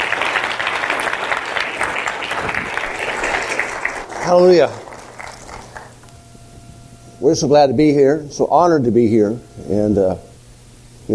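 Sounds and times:
church congregation applauding at a morning service: 0.0 - 6.1
speech: 4.3 - 4.8, 7.2 - 10.3.

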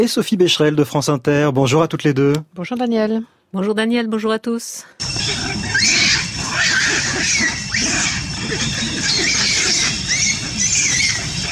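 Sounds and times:
speech: 0.0 - 6.0, 7.3 - 9.9
macaque monkey calls: 5.0 - 11.5.

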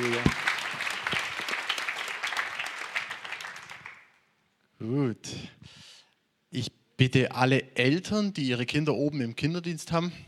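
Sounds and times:
speech: 0.0 - 0.4, 4.8 - 5.6, 6.5 - 10.2
audience applause: 0.0 - 4.1.

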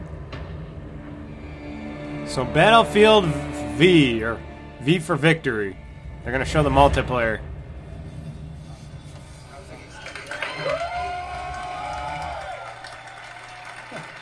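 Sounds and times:
sustained tone: 0.0 - 10.2
speech: 2.3 - 7.5
audience clapping: 9.8 - 14.2.

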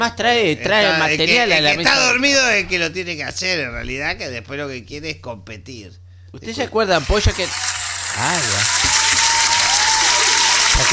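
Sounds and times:
speech: 0.0 - 8.9
audience applause: 7.0 - 10.9.

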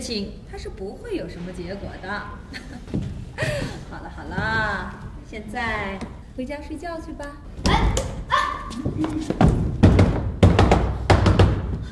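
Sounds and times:
speech: 0.0 - 9.8
fist pounding on a door: 9.4 - 11.9.

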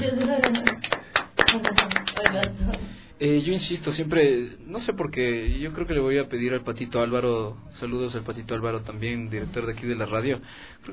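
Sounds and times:
small audience applauding a street singer: 0.0 - 2.9
speech: 3.2 - 10.9.

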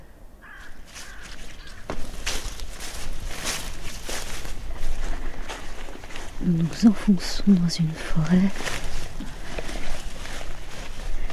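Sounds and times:
rushing noise: 0.2 - 11.3
crow cawing on a former mine-warfare battlefield: 0.4 - 4.3, 10.2 - 11.3
speech: 6.4 - 8.8.

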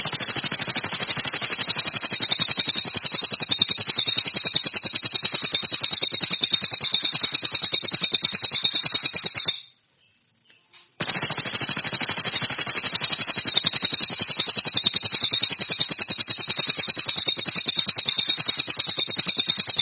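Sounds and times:
song: 0.0 - 9.8, 11.0 - 19.8.

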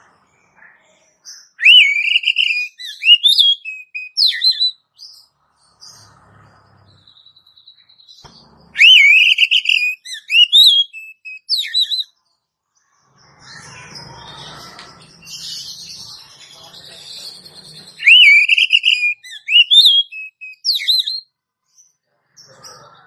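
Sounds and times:
Oriental magpie-robin warbled whistles: 1.6 - 4.8, 8.7 - 12.1, 18.0 - 21.2.

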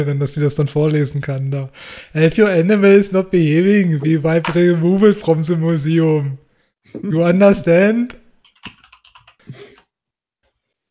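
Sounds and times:
speech: 0.0 - 8.2
typing on a computer keyboard into a website contact form: 8.4 - 9.8.

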